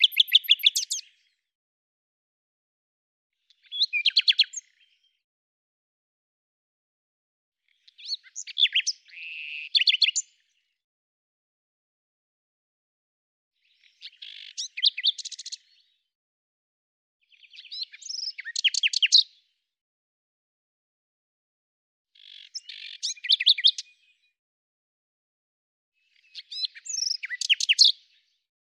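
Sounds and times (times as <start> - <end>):
bird song: 0.0 - 1.6, 3.3 - 5.3, 7.6 - 10.8, 13.6 - 16.2, 17.2 - 19.8, 22.2 - 24.4, 26.0 - 28.5.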